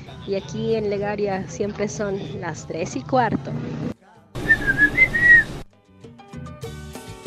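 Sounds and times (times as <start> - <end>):
speech: 0.2 - 3.9
whistling: 4.4 - 5.6.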